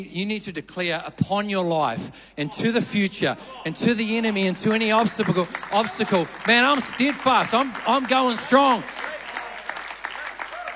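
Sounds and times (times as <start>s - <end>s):
speech: 0.0s - 9.1s
crowd clapping in a steady rhythm: 4.6s - 10.7s.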